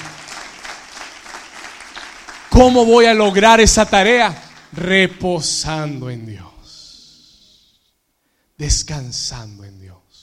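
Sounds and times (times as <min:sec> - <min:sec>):
audience applause: 0:00.0 - 0:04.9
speech: 0:02.6 - 0:06.5, 0:08.6 - 0:10.0.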